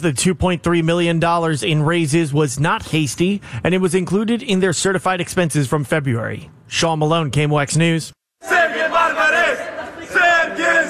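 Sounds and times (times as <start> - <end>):
speech: 0.0 - 10.8
crowd of Bosnian fans chanting and cheering at Lambert Airport in St. Louis: 8.4 - 10.8.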